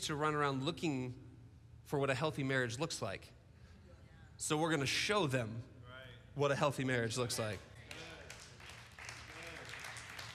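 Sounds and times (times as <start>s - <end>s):
speech: 0.0s - 1.2s, 1.9s - 3.4s, 4.4s - 5.7s, 6.4s - 8.1s
sparse clapping from a few audience members: 7.8s - 10.3s.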